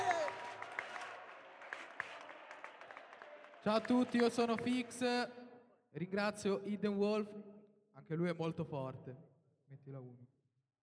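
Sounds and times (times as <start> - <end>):
audience applause: 0.0 - 5.2
speech: 3.6 - 10.4.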